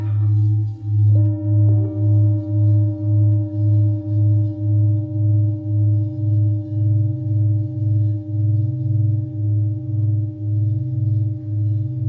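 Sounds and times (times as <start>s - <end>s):
singing bowl sound healing: 0.0s - 12.0s.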